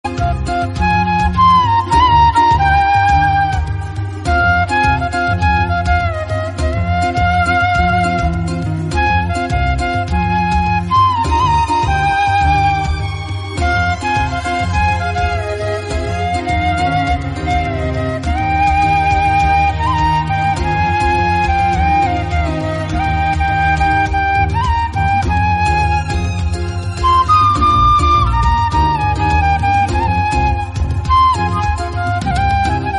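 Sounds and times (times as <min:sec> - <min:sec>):
instrumental flute remix: 0:00.0 - 0:32.9.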